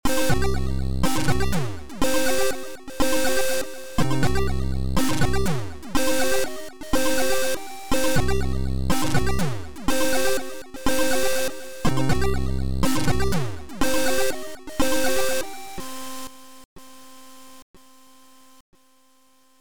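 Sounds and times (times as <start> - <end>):
high radiation warning alarm: 0.1 - 15.6.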